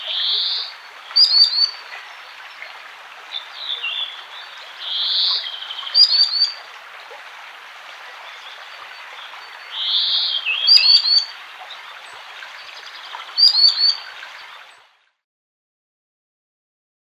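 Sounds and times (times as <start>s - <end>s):
common sandpiper calls: 0.2s - 1.8s, 4.9s - 6.6s, 9.8s - 11.3s, 13.4s - 14.0s.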